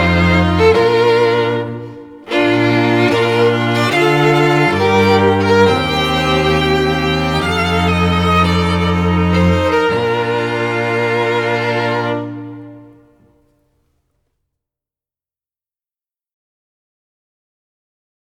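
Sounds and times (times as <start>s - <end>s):
strings playing bridal march: 0.0s - 13.4s.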